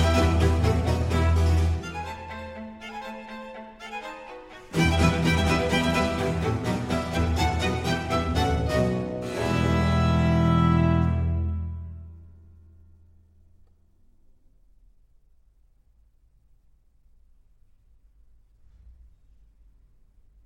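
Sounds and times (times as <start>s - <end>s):
string orchestra playing an allegro in E minor: 0.0s - 12.0s.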